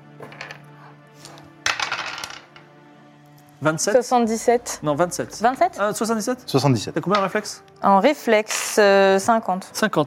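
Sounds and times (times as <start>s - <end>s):
dice rolled on a hard surface: 0.2s - 0.6s, 1.6s - 2.7s
speech: 3.6s - 10.0s.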